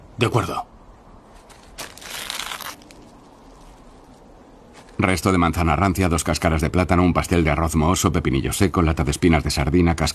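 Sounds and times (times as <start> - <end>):
speech: 0.2 - 0.7, 5.0 - 10.1
bag being opened, crinkling: 1.4 - 3.9.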